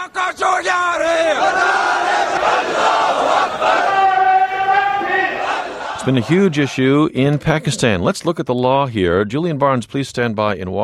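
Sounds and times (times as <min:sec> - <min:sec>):
crowd of protesters shouting at a rally: 0:00.0 - 0:06.7
speech: 0:06.0 - 0:10.8.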